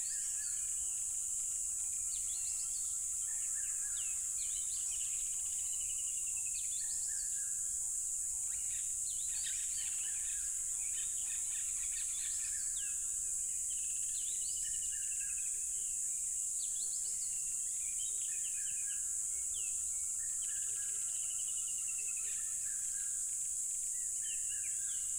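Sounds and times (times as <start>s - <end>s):
crickets chorus: 0.0s - 25.1s.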